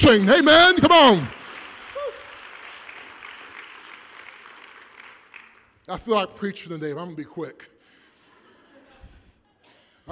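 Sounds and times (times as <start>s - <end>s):
audience clapping hands in praise: 0.0s - 5.9s
speech: 0.1s - 1.4s, 5.9s - 7.7s.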